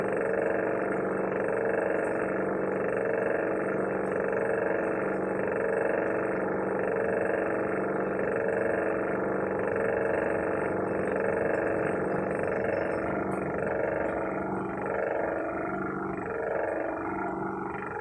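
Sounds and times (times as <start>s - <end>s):
old refrigerator humming: 0.0s - 18.0s.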